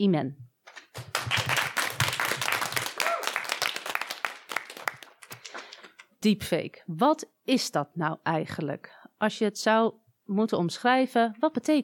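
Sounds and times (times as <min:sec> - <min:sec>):
speech: 0:00.0 - 0:00.4, 0:06.2 - 0:11.8
audience applause: 0:01.0 - 0:05.4.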